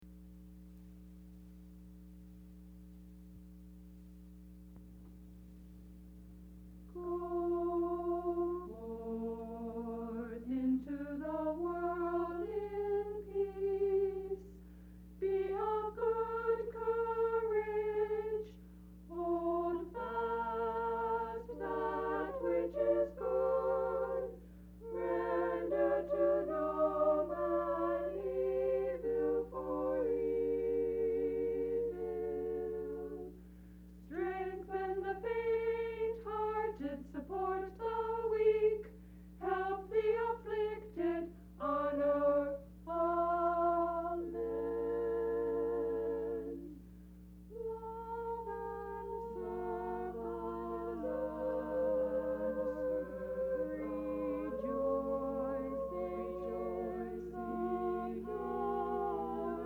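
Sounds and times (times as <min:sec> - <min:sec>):
girls singing in a quartet: 0:06.9 - 0:14.6, 0:15.2 - 0:33.4, 0:34.0 - 0:46.9, 0:47.5 - 0:59.6.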